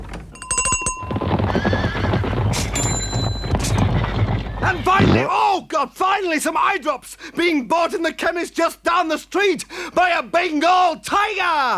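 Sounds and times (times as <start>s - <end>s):
herd of zebras: 0.6s - 5.3s
speech: 5.8s - 11.7s.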